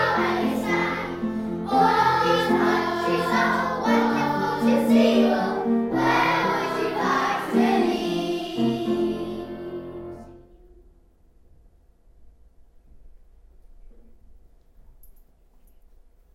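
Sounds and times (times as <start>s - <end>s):
choir singing: 0.0s - 10.5s.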